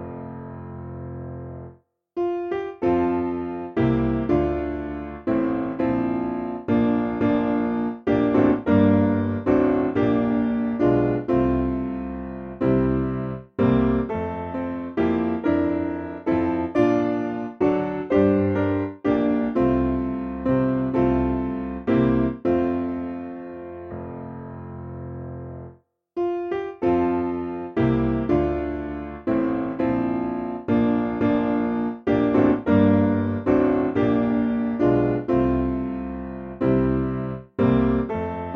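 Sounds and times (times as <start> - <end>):
piano piece: 0.0 - 38.5.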